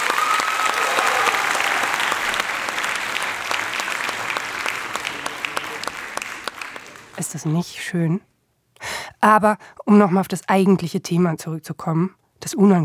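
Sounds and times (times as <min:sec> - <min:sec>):
hands clapping: 0:00.0 - 0:07.6
speech: 0:07.2 - 0:08.3, 0:09.2 - 0:12.8.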